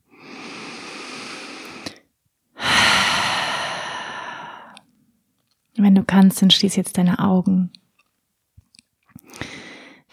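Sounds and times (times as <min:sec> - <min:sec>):
deep breaths through an open mouth during a guided relaxation: 0:00.1 - 0:02.0, 0:02.6 - 0:04.8, 0:09.3 - 0:10.1
speech: 0:06.0 - 0:07.8.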